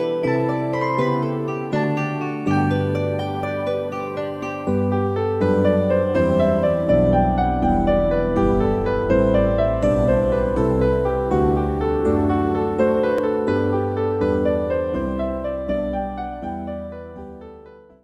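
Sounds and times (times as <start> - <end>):
piano harp: 0.0 - 18.0.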